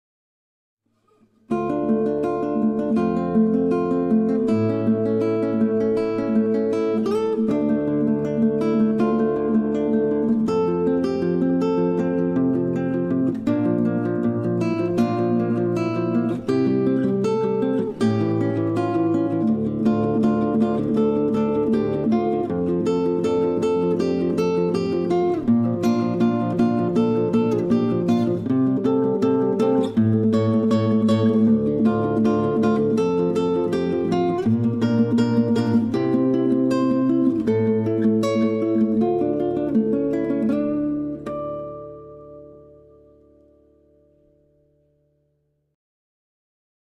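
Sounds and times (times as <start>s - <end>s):
guitar: 0.9s - 45.8s.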